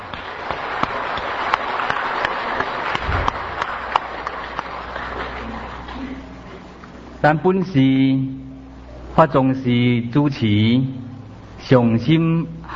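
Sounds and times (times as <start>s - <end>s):
crowd clapping: 0.0s - 6.6s
speech: 7.2s - 8.4s, 9.2s - 11.0s, 11.6s - 12.6s.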